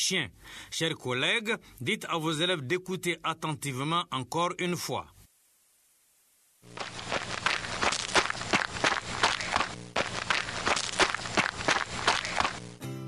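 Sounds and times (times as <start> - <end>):
speech: 0.0 - 5.2, 6.6 - 6.9
running footsteps: 6.7 - 12.8.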